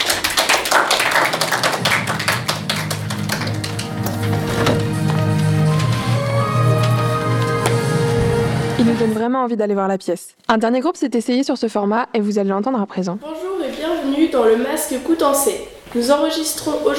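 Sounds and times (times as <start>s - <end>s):
group hand clapping: 0.0s - 8.1s
sustained tonal sound like music: 1.6s - 9.2s
speech: 8.8s - 16.9s.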